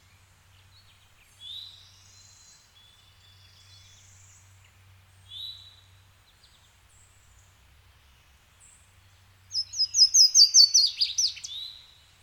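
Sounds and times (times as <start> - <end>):
birds in woods: 0.0 - 12.2.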